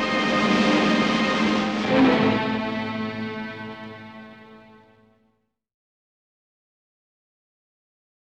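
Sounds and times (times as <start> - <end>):
climax music: 0.0 - 5.2.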